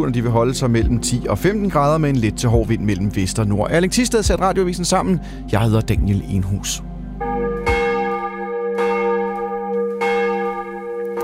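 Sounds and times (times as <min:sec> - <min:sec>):
speech: 0:00.0 - 0:06.9
church bells of Vor Frue Kirke in Copenhagen ringing for morning service: 0:07.2 - 0:11.2.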